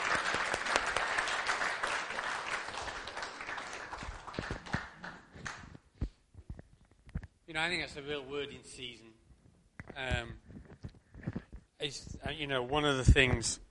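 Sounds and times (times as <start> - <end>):
audience applauding: 0.0 - 5.8
speech: 7.6 - 9.1, 10.0 - 10.4, 11.8 - 13.6.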